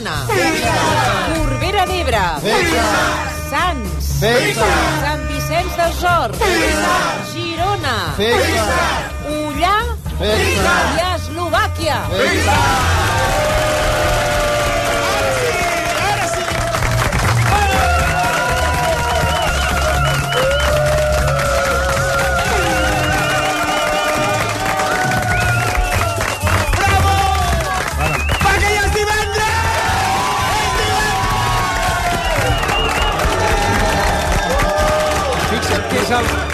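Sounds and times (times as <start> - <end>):
audience clapping: 0.0 - 7.3, 8.0 - 9.2, 10.3 - 11.1, 12.1 - 36.5
speech: 1.8 - 13.4
voices whooping and shouting: 12.3 - 36.0.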